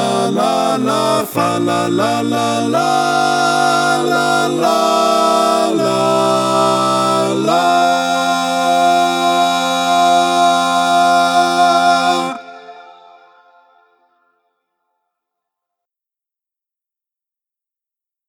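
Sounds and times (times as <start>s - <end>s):
choral carol without tenor part: 0.0s - 14.3s.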